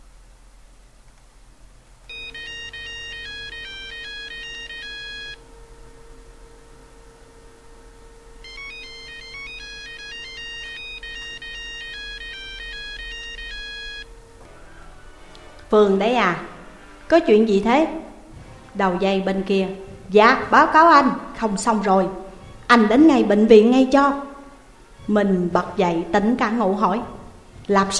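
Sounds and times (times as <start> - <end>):
low steady hum and faint hiss: 0.0 - 27.9
mobile phone ringtone: 2.1 - 5.4, 8.4 - 15.6
speech: 15.7 - 16.5, 17.1 - 18.0, 18.8 - 24.3, 25.1 - 27.9.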